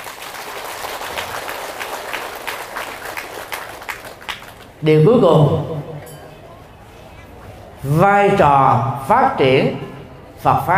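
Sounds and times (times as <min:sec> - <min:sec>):
crowd applause: 0:00.0 - 0:04.8
speech: 0:04.8 - 0:05.9, 0:07.8 - 0:10.7.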